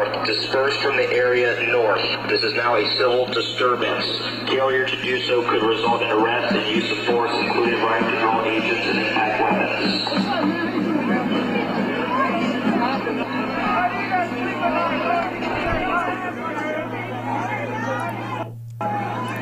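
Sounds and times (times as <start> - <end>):
speech: 0.3 - 10.7
protest crowd shouting at police: 10.3 - 19.4.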